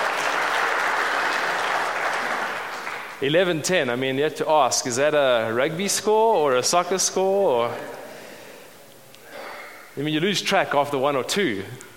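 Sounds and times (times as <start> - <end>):
audience applause: 0.0 - 3.2
speech: 3.2 - 8.0, 10.0 - 11.9.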